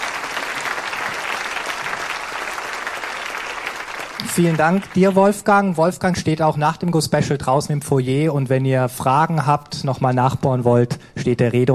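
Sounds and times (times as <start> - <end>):
audience applause: 0.0 - 5.5
speech: 4.2 - 11.7.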